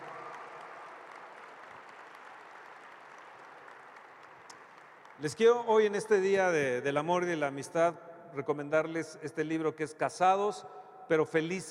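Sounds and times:
audience applause in auditorium: 0:00.0 - 0:05.3
speech: 0:05.2 - 0:11.6.

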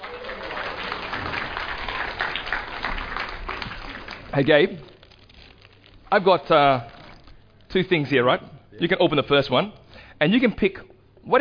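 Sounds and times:
audience applause: 0:00.0 - 0:04.7
speech: 0:04.4 - 0:04.9, 0:06.1 - 0:06.9, 0:07.7 - 0:11.3.

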